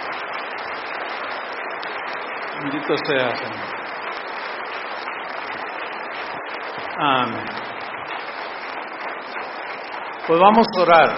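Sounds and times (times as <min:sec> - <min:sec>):
congregation applauding in church: 0:00.0 - 0:11.1
speech: 0:02.6 - 0:03.8, 0:07.0 - 0:07.6, 0:10.3 - 0:11.1.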